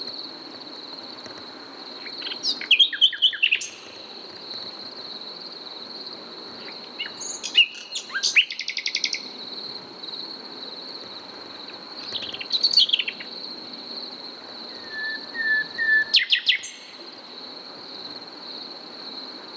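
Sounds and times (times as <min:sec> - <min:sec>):
Common nightingale singing, Luscinia megarhynchos: 0:02.0 - 0:04.1, 0:06.6 - 0:09.4, 0:11.7 - 0:13.4, 0:14.7 - 0:17.0.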